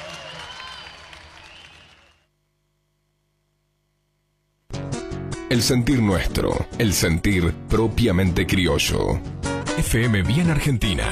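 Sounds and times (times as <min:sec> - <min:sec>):
audience applause: 0:00.0 - 0:02.3
speech: 0:05.5 - 0:11.1.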